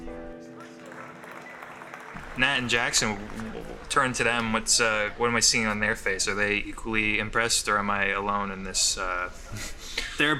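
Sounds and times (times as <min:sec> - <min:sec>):
thunderous applause from an audience: 0:00.6 - 0:05.2
speech: 0:02.4 - 0:10.3.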